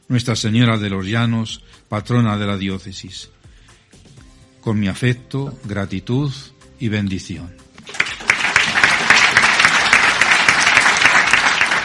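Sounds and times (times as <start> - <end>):
speech: 0.1 - 3.4, 4.6 - 8.0
prolonged applause from clergy: 7.8 - 11.8.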